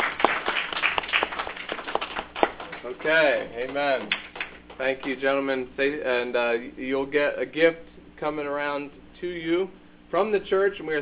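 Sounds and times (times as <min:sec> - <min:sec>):
church congregation clapping for standing fathers: 0:00.0 - 0:05.3
speech: 0:02.9 - 0:11.0.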